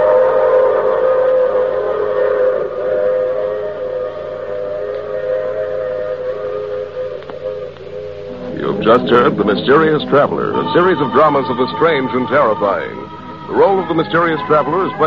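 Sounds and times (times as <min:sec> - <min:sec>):
train whistle blowing: 0:00.0 - 0:15.0
speech: 0:08.9 - 0:15.0.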